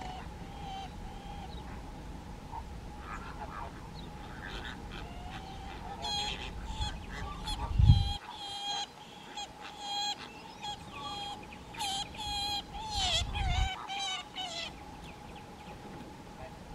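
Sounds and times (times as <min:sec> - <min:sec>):
crested caracara calling: 0:00.0 - 0:15.8.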